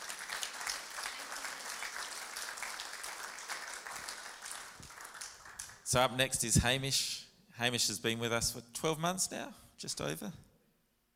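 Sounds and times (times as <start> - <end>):
audience clapping: 0.0 - 6.0
speech: 5.9 - 10.5.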